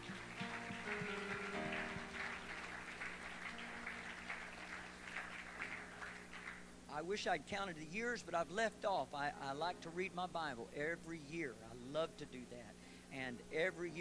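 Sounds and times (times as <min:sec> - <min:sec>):
audience clapping hands: 0:00.0 - 0:06.8
speech: 0:00.9 - 0:01.4, 0:07.0 - 0:13.9.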